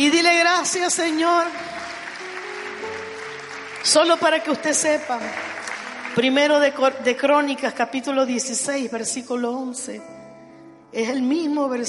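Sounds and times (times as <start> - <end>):
speech: 0.0 - 1.9, 3.8 - 10.2, 10.9 - 11.8
audience applause: 1.4 - 6.4.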